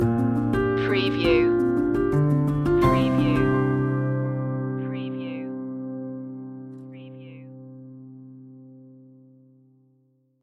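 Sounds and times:
music stinger: 0:00.0 - 0:05.4.

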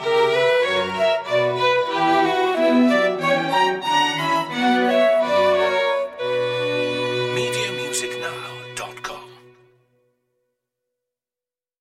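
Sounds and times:
chamber orchestra playing a minuet in B minor: 0:00.0 - 0:09.6.

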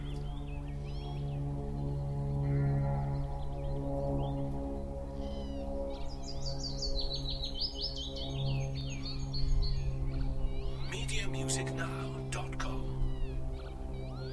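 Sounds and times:
aircraft noise: 0:00.0 - 0:14.3
spring birds singing: 0:00.0 - 0:14.3
bumblebees buzzing: 0:09.4 - 0:14.3.

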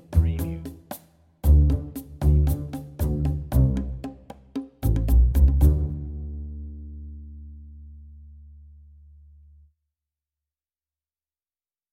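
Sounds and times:
bass line: 0:00.0 - 0:00.8, 0:01.4 - 0:04.2, 0:04.8 - 0:09.7
percussion: 0:00.0 - 0:06.3.

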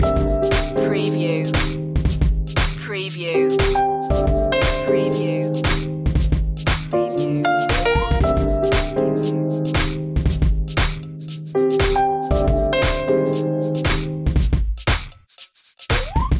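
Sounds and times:
strange new funk loop: 0:00.0 - 0:16.3.

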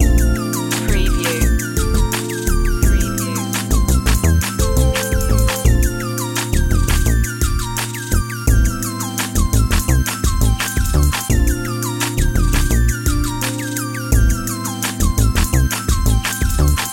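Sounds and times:
trap beat loop: 0:00.0 - 0:16.9.

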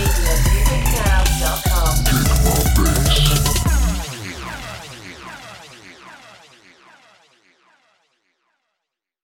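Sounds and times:
kick drum with bass: 0:00.0 - 0:04.1.

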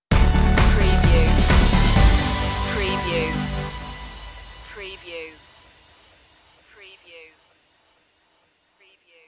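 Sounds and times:
music stinger: 0:00.1 - 0:06.4.

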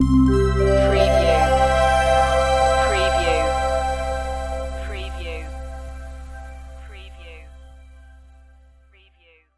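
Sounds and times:
web ident jingle: 0:00.4 - 0:07.8.

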